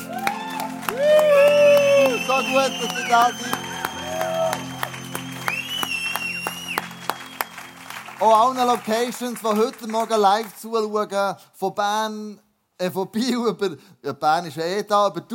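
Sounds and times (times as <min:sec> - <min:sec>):
crowd cheering with high whoops and shouts: 0:00.0 - 0:08.1
crowd clapping: 0:00.0 - 0:10.9
speech: 0:02.5 - 0:03.6, 0:08.2 - 0:15.3.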